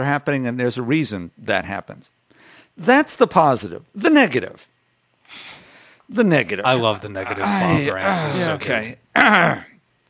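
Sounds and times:
speech: 0.0 - 2.2, 2.8 - 4.7, 5.3 - 9.7
throat clearing: 9.2 - 9.8.

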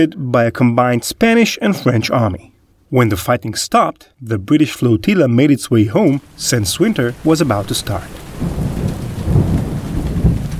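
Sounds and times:
speech: 0.0 - 8.9
heavy rain: 6.0 - 10.5
thunder: 8.2 - 10.5.

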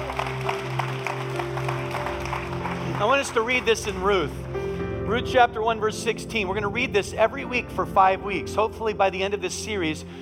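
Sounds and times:
church congregation applauding to welcome their church family: 0.0 - 4.5
speech: 3.0 - 4.4, 5.1 - 10.1.

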